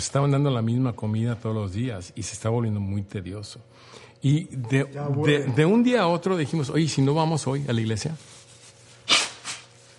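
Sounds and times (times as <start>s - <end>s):
speech: 0.0s - 8.4s
breathy puff: 9.0s - 9.7s
sneeze: 9.0s - 9.7s.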